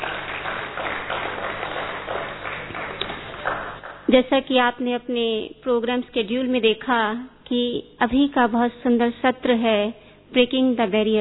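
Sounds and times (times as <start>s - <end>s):
audience applause: 0.0s - 4.1s
speech: 4.1s - 11.2s.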